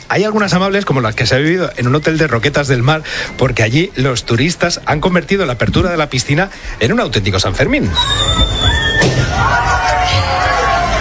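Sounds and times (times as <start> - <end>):
speech: 0.1 - 8.6
busy crowd of voices and cheering: 7.6 - 10.9
shrill high whistle: 7.9 - 10.6.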